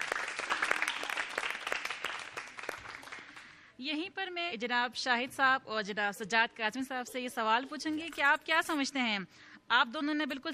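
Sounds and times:
audience applause: 0:00.0 - 0:03.5
speech: 0:03.8 - 0:10.5.

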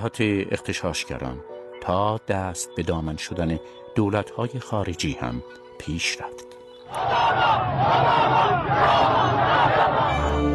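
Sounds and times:
speech: 0:00.0 - 0:10.3
protesters chanting a slogan in unison during post-election unrest: 0:06.9 - 0:10.4.

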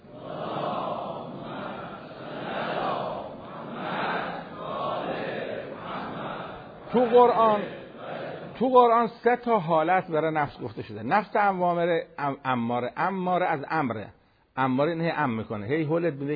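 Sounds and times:
congregation reciting salawat in unison during a religious talk: 0:00.0 - 0:11.9
speech: 0:06.9 - 0:07.8, 0:08.6 - 0:16.3.

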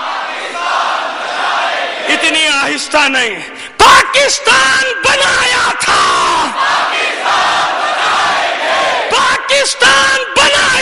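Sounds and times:
crowd chanting a patriotic slogan: 0:00.0 - 0:02.4, 0:06.0 - 0:09.5
speech: 0:02.3 - 0:08.2, 0:09.6 - 0:10.8.

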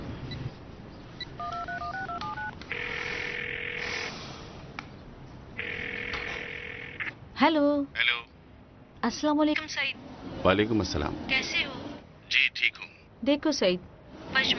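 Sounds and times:
keypad dialing tones: 0:01.2 - 0:04.2, 0:05.6 - 0:07.1
speech: 0:07.4 - 0:08.2, 0:09.0 - 0:11.7, 0:13.2 - 0:14.5.

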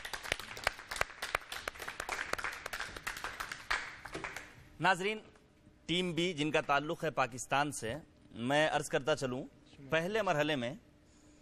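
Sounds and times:
audience applause welcoming a team: 0:00.0 - 0:04.5
speech: 0:04.8 - 0:05.3, 0:05.9 - 0:10.9.

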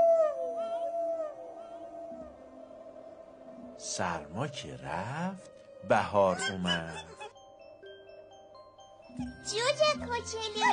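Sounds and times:
wolf-like animal howling: 0:00.0 - 0:03.8, 0:06.0 - 0:07.3
speech: 0:03.8 - 0:07.2, 0:09.2 - 0:10.7.

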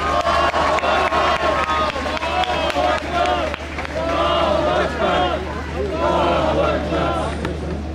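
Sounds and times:
applause: 0:00.0 - 0:06.2
crowd cheering: 0:00.0 - 0:07.8.

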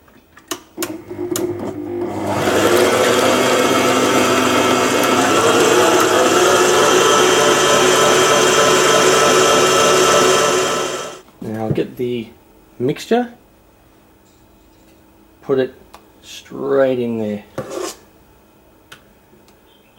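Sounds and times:
electric hand mixer beating a creamy mixture on high: 0:00.9 - 0:11.2
speech: 0:12.0 - 0:13.4, 0:15.5 - 0:17.8.

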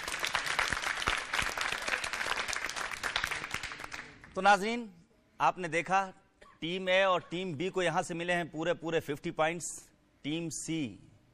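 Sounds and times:
loud applause: 0:00.0 - 0:04.2
speech: 0:04.4 - 0:11.1.

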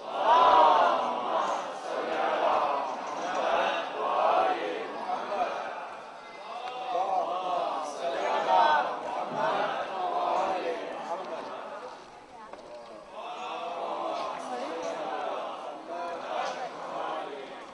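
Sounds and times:
audience at a religious gathering chanting a salawat in unison: 0:00.0 - 0:12.1, 0:13.0 - 0:17.7.

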